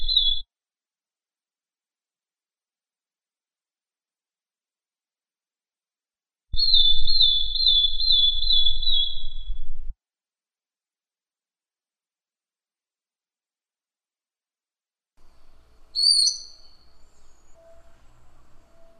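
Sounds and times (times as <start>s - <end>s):
bird singing one long high pure whistle: 0.0s - 0.4s, 6.6s - 9.7s, 15.9s - 18.9s.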